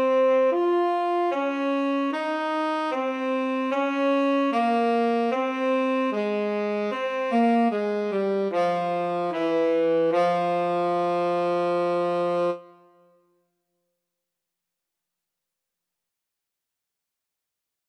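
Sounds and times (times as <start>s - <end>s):
slow etude: 0.0s - 13.0s.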